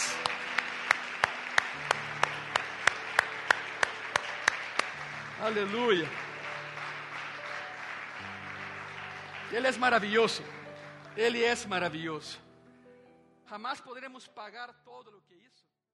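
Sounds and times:
audience applause: 0.0 - 11.6
speech: 5.4 - 6.3, 9.5 - 10.6, 11.2 - 12.4, 13.5 - 15.7.

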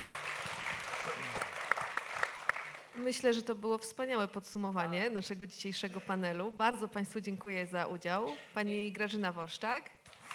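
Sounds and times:
audience applauding: 0.0 - 3.0
speech: 3.0 - 10.3.

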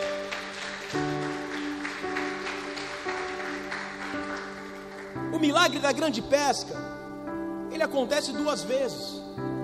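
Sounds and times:
audience applause: 0.0 - 5.7
speech: 5.4 - 6.9, 7.8 - 9.5.

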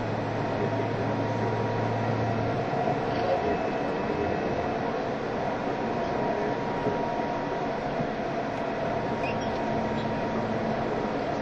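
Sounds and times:
E351 series Super Azusa 18 train running: 0.0 - 11.4.

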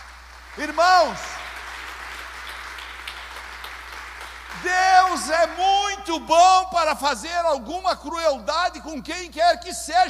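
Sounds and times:
audience applauding: 0.0 - 6.0
speech: 0.6 - 1.4, 4.6 - 10.0.

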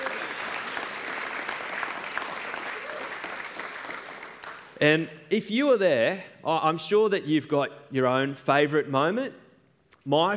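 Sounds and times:
audience applause and cheering: 0.0 - 4.8
speech: 4.8 - 9.4, 10.0 - 10.3.

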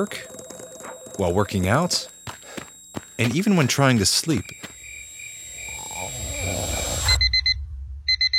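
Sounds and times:
speech: 0.0 - 0.4, 1.2 - 2.1, 3.2 - 4.7
rapid electronic alarm beeping: 0.0 - 8.3
simulated tinnitus ringing tone: 0.0 - 8.3
low rumbling growl-like sounds: 5.7 - 7.2.

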